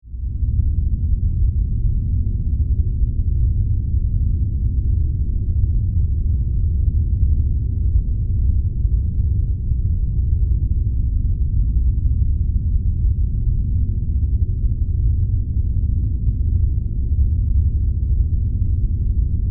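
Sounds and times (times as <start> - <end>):
dark rumbling drone: 0.0 - 19.5.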